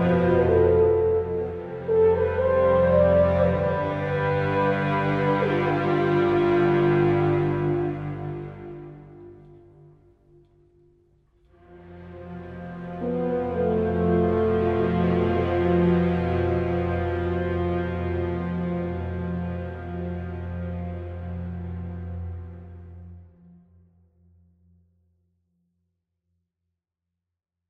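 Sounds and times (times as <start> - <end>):
weep horn: 0.0 - 9.6, 12.5 - 20.6.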